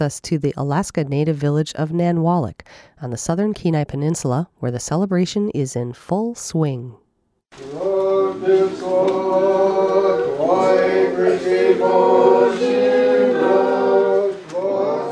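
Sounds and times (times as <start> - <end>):
speech: 0.0 - 13.8
people singing at Orthodox Christmas in St. Sergius and Herman Church, Nanwalek: 7.6 - 15.0.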